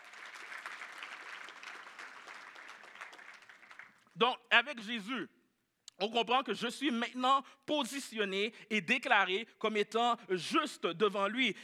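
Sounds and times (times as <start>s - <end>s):
applause: 0.0s - 4.2s
speech: 4.2s - 5.4s, 6.0s - 11.6s.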